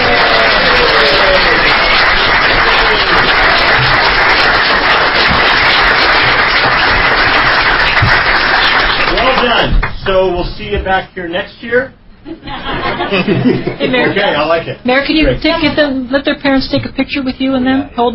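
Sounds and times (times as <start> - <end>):
audience clapping for the team: 0.0 - 10.4
speech: 10.8 - 18.1
laughter: 12.2 - 14.6.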